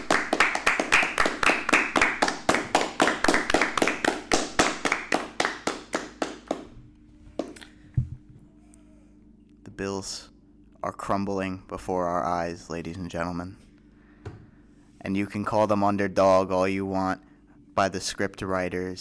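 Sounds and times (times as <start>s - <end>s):
round of applause: 0.0s - 6.8s
speech: 10.0s - 13.6s, 15.1s - 18.9s.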